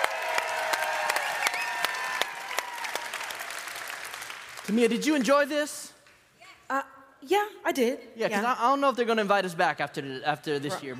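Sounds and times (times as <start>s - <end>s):
audience clapping for two competitors at the Gateway Throwdown: 0.0s - 6.2s
speech: 4.7s - 5.9s, 6.7s - 10.9s.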